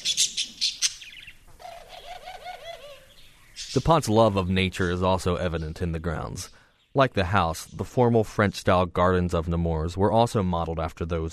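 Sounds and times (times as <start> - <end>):
caged parakeets, canaries and doves chirping: 0.0 - 10.4
speech: 3.7 - 11.3.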